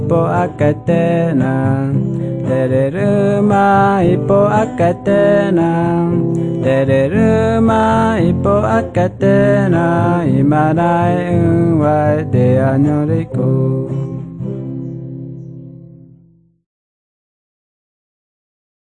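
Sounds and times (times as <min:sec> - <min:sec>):
Guarani Mbya songs: 0:00.0 - 0:14.1.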